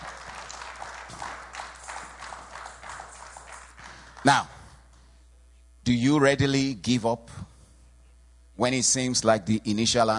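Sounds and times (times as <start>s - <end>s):
audience hand clapping: 0.0s - 5.0s
speech: 4.2s - 4.6s, 5.8s - 7.5s, 8.6s - 10.1s.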